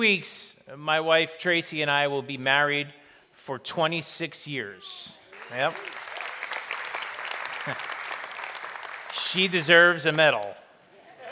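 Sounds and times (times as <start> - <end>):
speech: 0.0 - 6.0, 7.6 - 7.9, 9.3 - 10.6
audience applause: 5.3 - 10.4.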